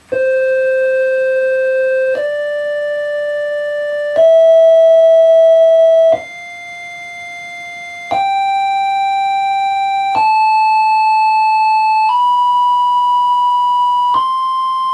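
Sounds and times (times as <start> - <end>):
just-intonation scale: 0.0 - 14.9.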